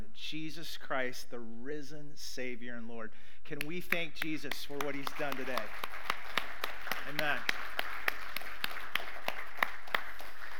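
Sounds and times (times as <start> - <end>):
speech: 0.3 - 6.2, 7.0 - 7.8
audience applause: 4.8 - 10.5.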